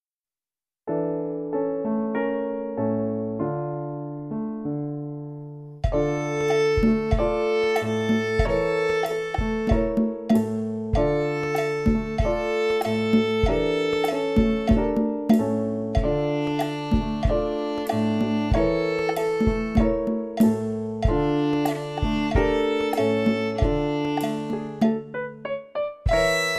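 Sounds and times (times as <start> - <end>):
slow tango music: 0.9 - 26.5.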